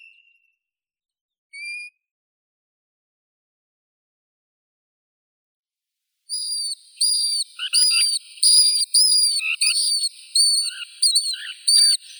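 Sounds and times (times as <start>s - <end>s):
European golden plover Pluvialis apricaria calling: 6.3s - 12.1s.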